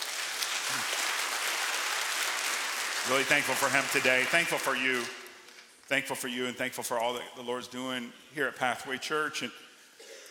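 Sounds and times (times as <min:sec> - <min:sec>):
audience clapping: 0:00.0 - 0:05.6
speech: 0:03.1 - 0:05.2, 0:05.9 - 0:09.6.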